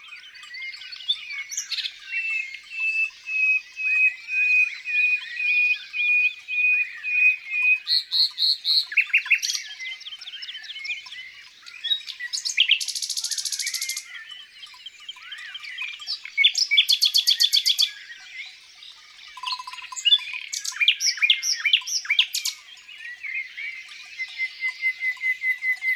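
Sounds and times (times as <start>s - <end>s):
common nightingale song: 0.0s - 25.9s.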